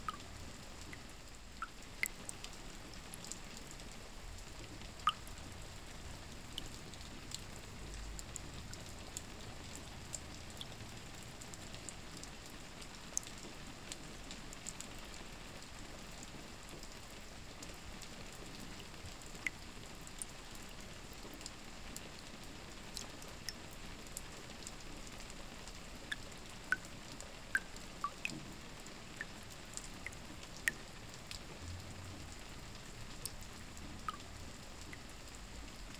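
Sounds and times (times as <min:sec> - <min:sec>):
soft rain ambience: 0:00.0 - 0:35.9.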